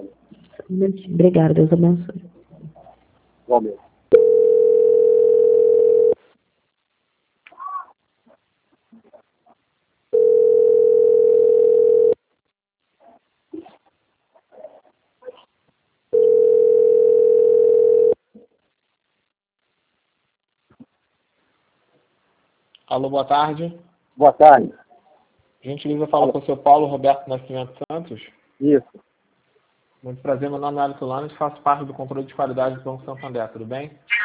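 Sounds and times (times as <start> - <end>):
speech: 0.7 - 2.2, 3.5 - 3.9, 23.0 - 24.8, 25.6 - 29.1, 30.0 - 34.2
telephone line tones while a bank call is transferred: 4.2 - 6.2, 10.2 - 12.2, 16.2 - 18.2.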